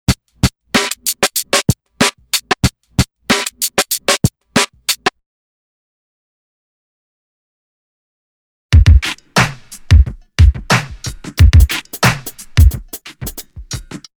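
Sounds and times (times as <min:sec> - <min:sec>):
drum loop: 0:00.0 - 0:05.1, 0:08.8 - 0:14.0.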